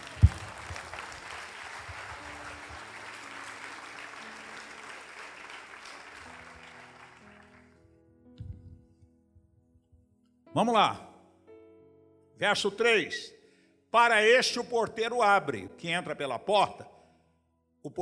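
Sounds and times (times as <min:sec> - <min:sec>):
audience applauding: 0:00.0 - 0:07.8
speech: 0:10.6 - 0:11.1, 0:12.4 - 0:16.9, 0:17.8 - 0:18.0.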